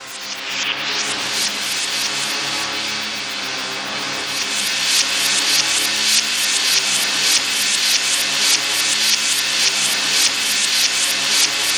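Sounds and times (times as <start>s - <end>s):
twisted insect special effect: 0.0s - 11.7s.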